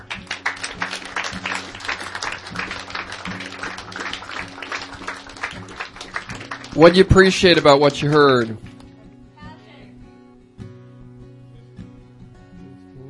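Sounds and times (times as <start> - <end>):
audience clapping: 0.0 - 8.9
speech: 6.8 - 8.7.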